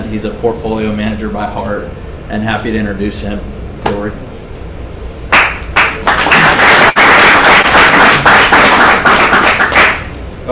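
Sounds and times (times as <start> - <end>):
speech: 0.1 - 4.8
audience applause: 5.3 - 10.1.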